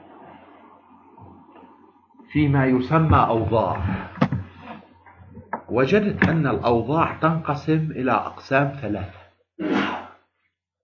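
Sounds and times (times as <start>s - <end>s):
speech: 2.3s - 4.1s, 5.7s - 9.7s
sneeze: 9.6s - 10.3s.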